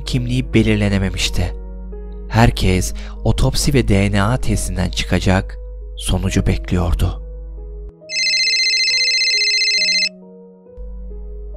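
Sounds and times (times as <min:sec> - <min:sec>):
speech: 0:00.1 - 0:01.6, 0:02.3 - 0:07.2
mobile phone ringing: 0:08.1 - 0:10.1.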